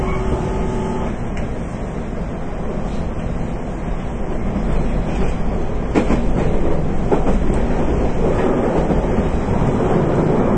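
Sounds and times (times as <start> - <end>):
brief tone: 0.0 - 1.1
Nippō Line 813-series train ride rumble: 0.0 - 10.5.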